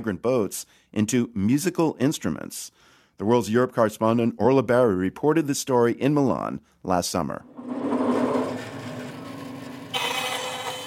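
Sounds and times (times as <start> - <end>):
speech: 0.0 - 7.8
bandsaw slicing through a wooden plank: 7.6 - 10.8.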